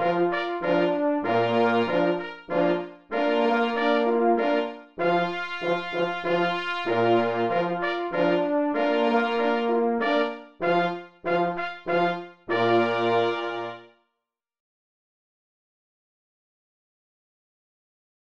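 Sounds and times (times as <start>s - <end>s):
minuet on mixed instruments: 0.0s - 13.9s.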